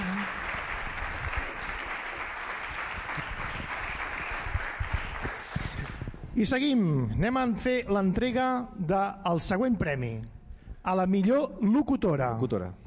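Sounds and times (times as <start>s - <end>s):
applause: 0.0s - 6.0s
speech: 6.4s - 12.8s.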